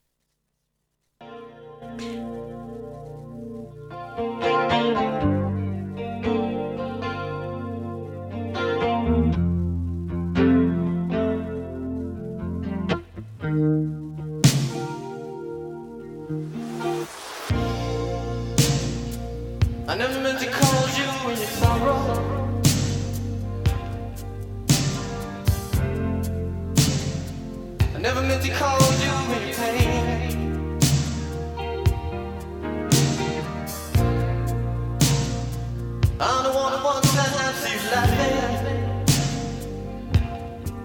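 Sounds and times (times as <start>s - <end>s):
chorus-drenched distorted guitar chords: 1.2s - 40.8s
world-famous slow pop song playing: 1.2s - 40.8s
person singing: 19.8s - 24.0s, 27.9s - 31.0s, 36.1s - 40.6s.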